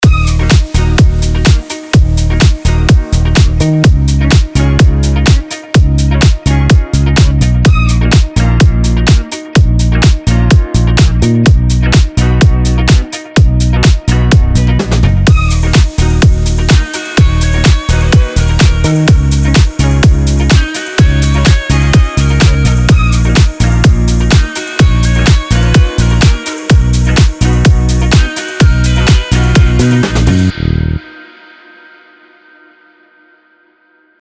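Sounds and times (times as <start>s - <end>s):
French house music: 0.0s - 31.1s.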